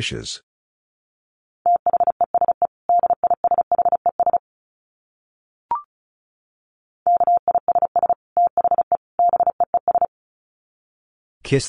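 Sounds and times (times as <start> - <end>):
fast Morse code tones at 35 words per minute: 1.7 - 4.4, 7.1 - 10.1.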